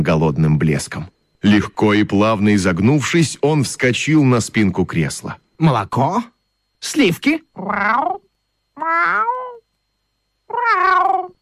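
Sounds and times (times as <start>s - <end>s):
speech: 0.0s - 9.4s, 10.5s - 11.3s
cat meowing: 7.6s - 8.2s, 8.8s - 9.6s, 10.5s - 11.3s.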